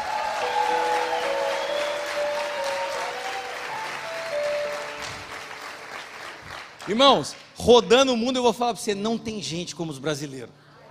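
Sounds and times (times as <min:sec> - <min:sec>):
audience applause: 0:00.0 - 0:07.5
speech: 0:06.9 - 0:10.6.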